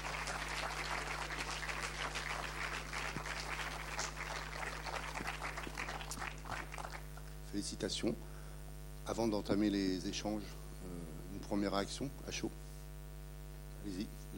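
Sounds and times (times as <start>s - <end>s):
audience applause: 0.0s - 7.3s
speech: 7.6s - 8.3s, 9.1s - 12.6s, 13.8s - 14.3s.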